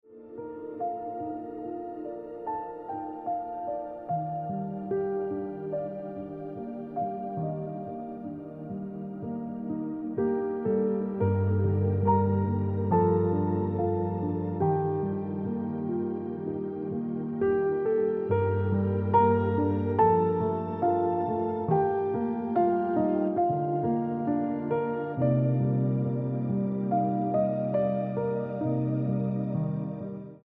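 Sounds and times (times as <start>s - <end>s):
piano music: 0.0s - 30.4s.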